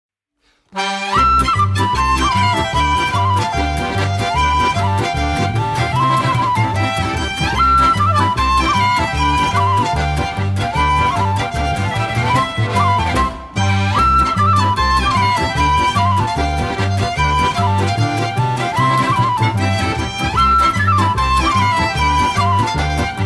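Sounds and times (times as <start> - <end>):
polka music: 0.7 - 23.2.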